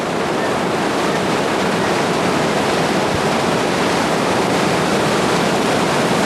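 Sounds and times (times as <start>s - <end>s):
tidal bore on the Qiantang River at Yanguan surging against a tower: 0.0s - 6.2s.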